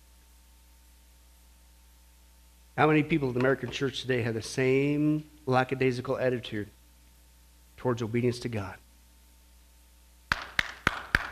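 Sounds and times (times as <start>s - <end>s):
speech: 2.8s - 6.8s, 7.8s - 8.8s
audience clapping: 10.3s - 11.3s.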